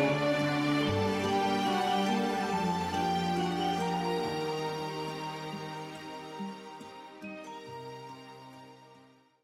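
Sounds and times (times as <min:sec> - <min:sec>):
brass music: 0:00.0 - 0:05.9.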